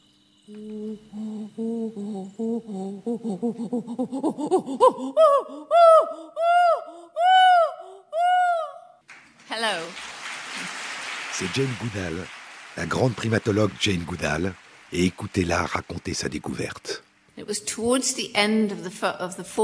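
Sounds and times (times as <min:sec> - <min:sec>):
speech: 0:00.5 - 0:07.3, 0:09.6 - 0:10.8, 0:11.4 - 0:19.6
human imitating chimpanzee pant-hoot: 0:01.2 - 0:08.9.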